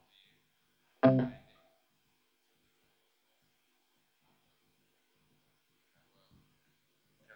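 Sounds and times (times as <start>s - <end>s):
harp soundcheck: 1.1s - 1.3s.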